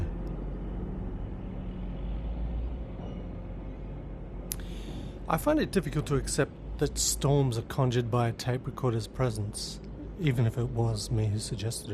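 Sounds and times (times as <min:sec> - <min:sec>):
road train truck driving past: 0:00.0 - 0:07.1
speech: 0:05.3 - 0:11.9.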